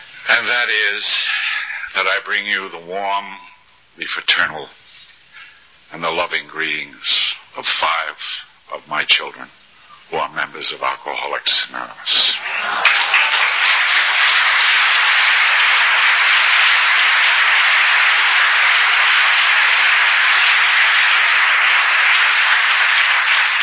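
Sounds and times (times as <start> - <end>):
speech: 0.3 - 4.8, 5.9 - 13.2
audience applause: 12.2 - 23.6.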